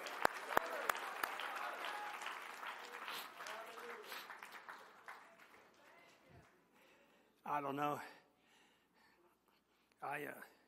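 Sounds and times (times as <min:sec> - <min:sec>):
audience clapping: 0:00.0 - 0:06.8
speech: 0:07.5 - 0:08.2, 0:10.1 - 0:10.5.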